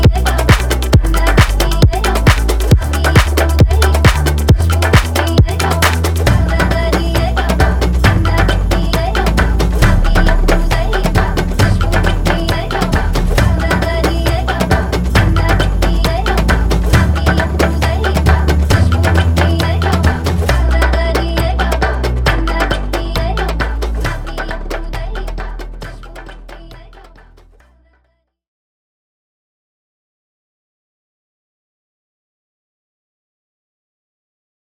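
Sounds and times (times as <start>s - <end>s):
tribal music: 0.0s - 27.2s.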